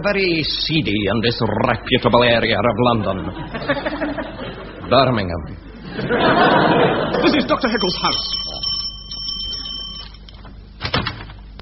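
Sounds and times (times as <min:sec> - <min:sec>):
speech: 0:00.0 - 0:03.9, 0:04.9 - 0:08.6
laughter: 0:02.8 - 0:08.2
doorbell ringing: 0:07.7 - 0:10.2.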